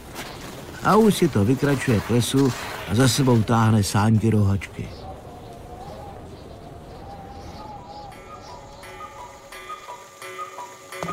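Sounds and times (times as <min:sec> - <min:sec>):
speech: 0:00.8 - 0:05.0
cuckoo clock calling noon: 0:07.1 - 0:11.1.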